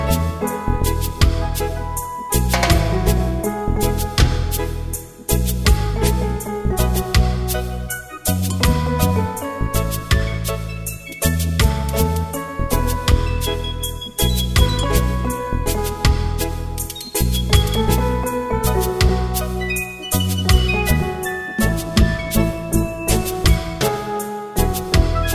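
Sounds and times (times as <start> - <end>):
reggae band playing instrumental: 0.0 - 25.3.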